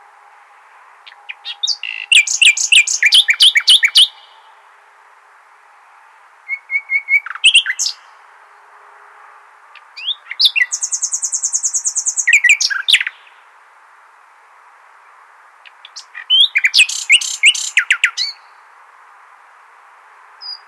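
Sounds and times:
common nightingale singing: 1.0 - 4.6, 6.5 - 8.2, 9.8 - 13.4, 15.0 - 18.7, 20.4 - 20.6.

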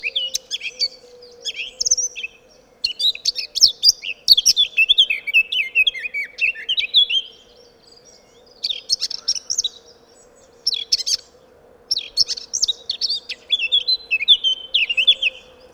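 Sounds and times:
Eurasian blackcap song: 0.0 - 11.3, 11.9 - 15.7.

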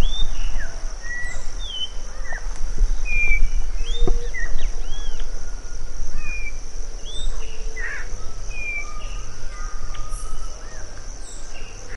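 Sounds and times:
birds chirping: 0.0 - 11.9.

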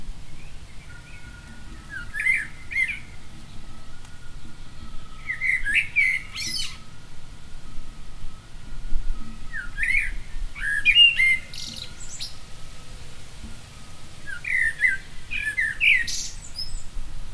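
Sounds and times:
common blackbird chirping: 0.3 - 3.8, 4.4 - 6.9, 9.5 - 12.5, 14.2 - 16.9.

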